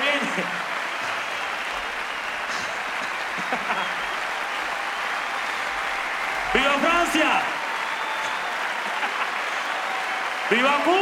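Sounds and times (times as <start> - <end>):
laughter: 0.0 - 9.8
audience applause: 0.0 - 11.0
speech: 0.4 - 0.7, 10.5 - 11.0.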